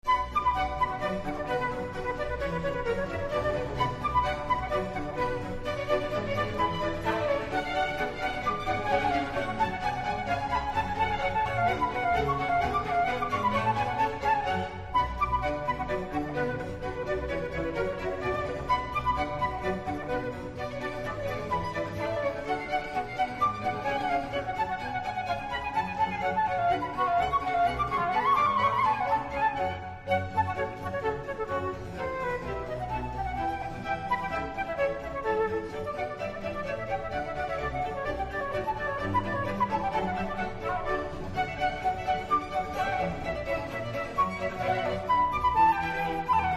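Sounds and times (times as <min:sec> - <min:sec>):
orchestral suite in B minor: 0:00.0 - 0:46.5.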